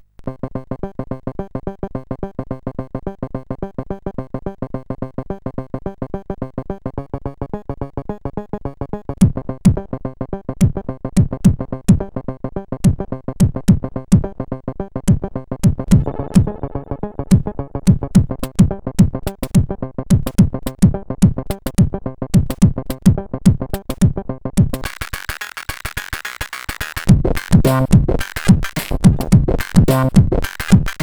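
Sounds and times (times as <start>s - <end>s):
crunch funk CSG8580R5 SID chip music: 7.5s - 14.4s, 15.0s - 31.0s.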